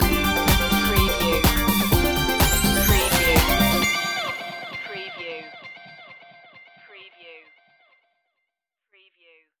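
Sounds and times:
disco loop: 0.0s - 5.7s.

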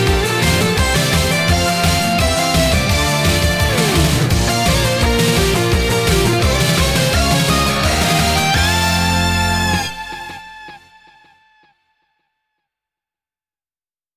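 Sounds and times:
J-pop victory music: 0.0s - 11.0s.

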